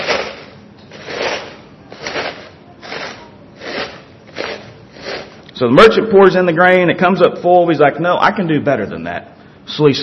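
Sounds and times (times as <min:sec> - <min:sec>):
shaking down a bag of chips: 0:00.0 - 0:05.4
speech: 0:05.6 - 0:10.0.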